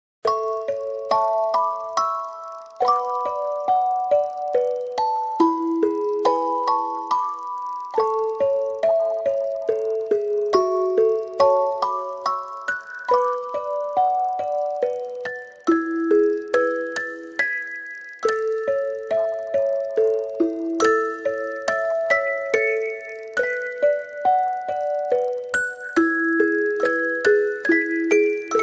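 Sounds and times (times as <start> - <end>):
magical background music without words: 0.3 - 28.6.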